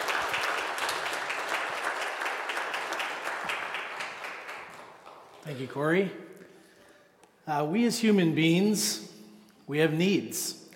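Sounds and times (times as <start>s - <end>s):
church audience applauding: 0.0s - 5.8s
speech: 5.5s - 6.3s, 7.5s - 9.1s, 9.7s - 10.6s.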